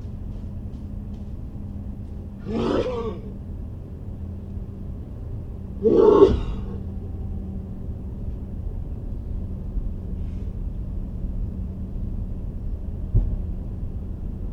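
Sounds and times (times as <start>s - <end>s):
Airbus 319 or 320 interior during landing: 0.0s - 14.5s.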